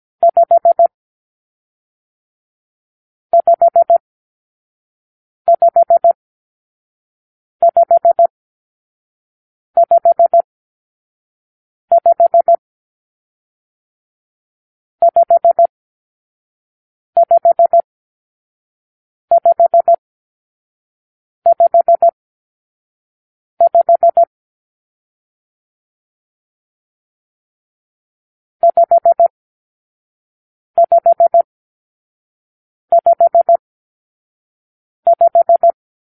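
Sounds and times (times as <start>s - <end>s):
morse code for numeral five: 0.2s - 0.9s, 3.4s - 4.0s, 5.5s - 6.2s, 7.6s - 8.3s, 9.8s - 10.5s, 11.9s - 12.6s, 15.0s - 15.7s, 17.2s - 17.8s, 19.3s - 20.0s, 21.5s - 22.2s, 23.6s - 24.3s, 28.6s - 29.3s, 30.8s - 31.5s, 32.9s - 33.6s, 35.1s - 35.8s.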